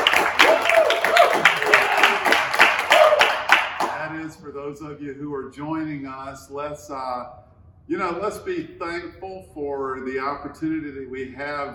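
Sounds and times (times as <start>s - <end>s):
audience applause: 0.0s - 4.0s
speech: 5.5s - 11.7s.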